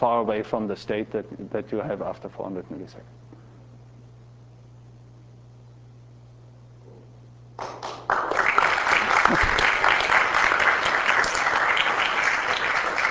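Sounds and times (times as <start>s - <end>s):
speech: 0.0s - 3.3s
audience applause: 7.6s - 13.0s.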